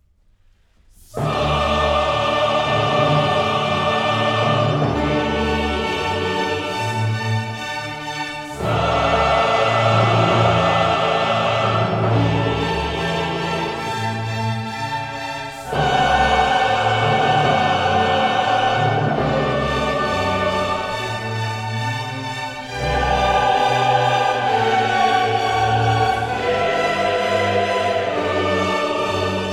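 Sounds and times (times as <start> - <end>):
soloists, chorus and orchestra performing: 0.9 - 29.5.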